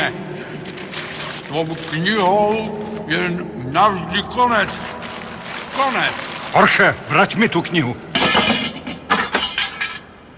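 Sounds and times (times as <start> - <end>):
speech: 1.5 - 5.0, 5.8 - 8.1
lamp breaking with glassy crashes and clinks: 8.2 - 10.1.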